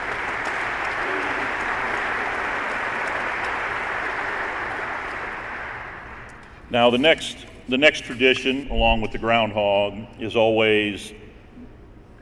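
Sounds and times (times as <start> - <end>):
round of applause: 0.0 - 6.3
speech: 6.7 - 11.2.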